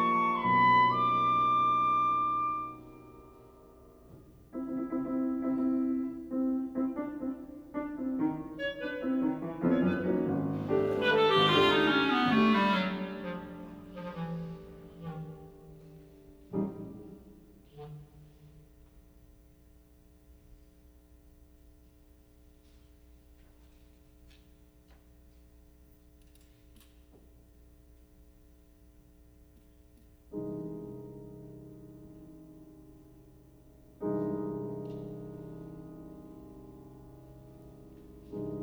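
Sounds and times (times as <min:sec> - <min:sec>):
clarinet and piano pieces: 0:00.0 - 0:19.0, 0:30.3 - 0:38.6.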